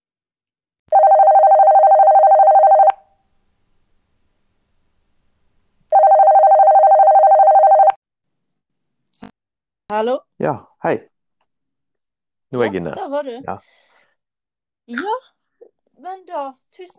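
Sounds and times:
buzzing telephone ring tones while placing an outgoing call: 0.9s - 3.2s, 5.9s - 8.0s
speech: 9.9s - 11.1s, 12.5s - 13.8s, 14.9s - 15.4s, 16.0s - 16.9s.

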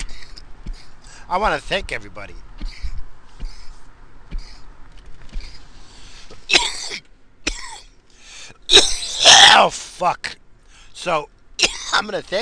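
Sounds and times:
breathing: 0.0s - 1.3s, 5.4s - 6.4s, 8.1s - 8.6s, 10.6s - 11.0s
speech: 1.3s - 2.8s, 9.6s - 10.4s, 11.0s - 12.3s
harsh raspy coughing after smoking: 2.6s - 3.7s, 6.5s - 7.9s, 8.7s - 9.6s, 11.6s - 12.0s.

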